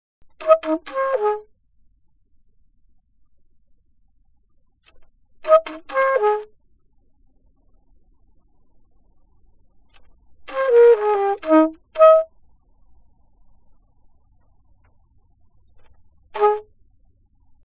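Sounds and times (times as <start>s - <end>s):
alto saxophone: 0.4s - 1.5s, 5.4s - 6.5s, 10.5s - 12.3s, 16.4s - 16.7s.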